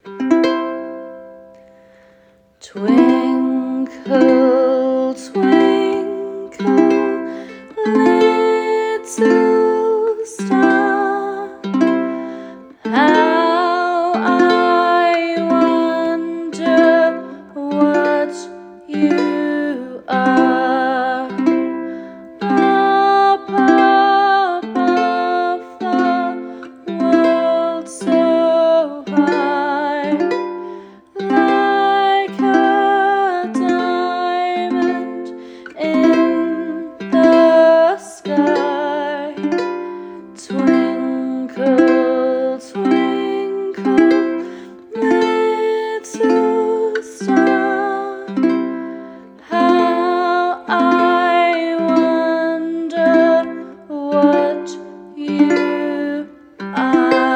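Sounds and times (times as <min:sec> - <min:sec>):
ukulele: 0:00.0 - 0:57.3.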